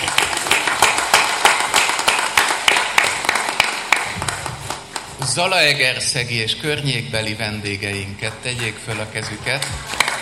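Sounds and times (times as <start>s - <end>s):
audience applause: 0.0s - 5.4s, 7.9s - 10.2s
speech: 5.3s - 10.0s.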